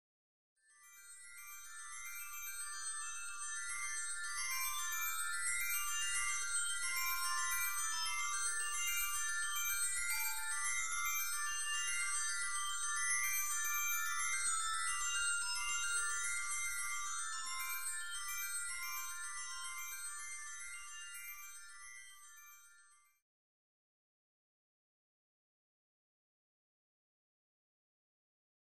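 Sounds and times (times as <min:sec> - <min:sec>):
glockenspiel: 0:00.7 - 0:23.2.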